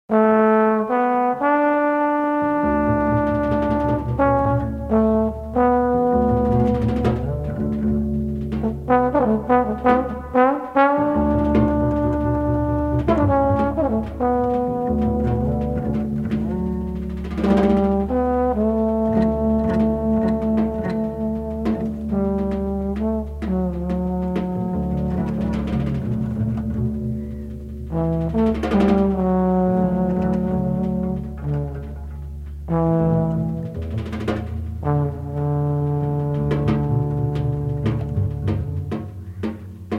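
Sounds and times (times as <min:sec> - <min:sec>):
jazz quintet: 0:00.1 - 0:39.9.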